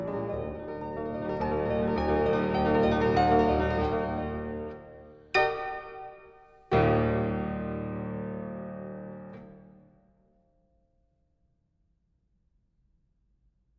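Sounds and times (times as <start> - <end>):
piano prelude in E flat major: 0.0 - 10.1.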